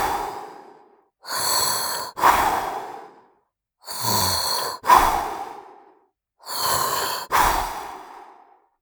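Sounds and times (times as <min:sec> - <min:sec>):
monster snore body noise: 0:01.3 - 0:02.2, 0:03.9 - 0:05.3, 0:06.5 - 0:07.6.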